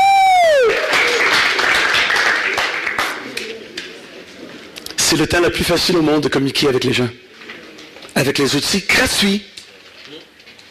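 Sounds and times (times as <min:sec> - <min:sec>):
audience applause: 0:00.0 - 0:03.4
speech: 0:05.1 - 0:07.3, 0:08.2 - 0:09.6.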